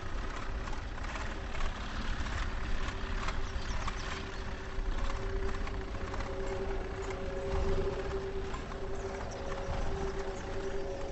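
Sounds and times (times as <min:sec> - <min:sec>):
horse hooves clip-clopping: 0:00.0 - 0:11.1
low rumble: 0:00.0 - 0:11.1
humming tone: 0:04.2 - 0:11.1.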